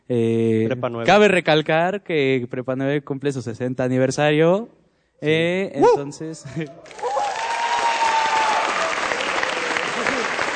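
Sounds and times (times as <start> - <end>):
speech: 0.1 - 7.3
audience applause: 6.8 - 10.5.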